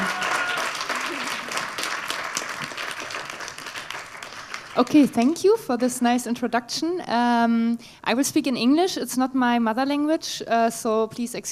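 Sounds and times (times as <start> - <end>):
audience applause: 0.0 - 4.9
speech: 4.8 - 11.5.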